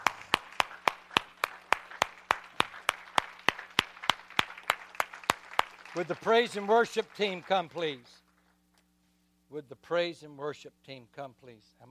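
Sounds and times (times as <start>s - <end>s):
audience hand clapping: 0.0s - 8.6s
speech: 6.0s - 8.2s, 9.5s - 11.8s.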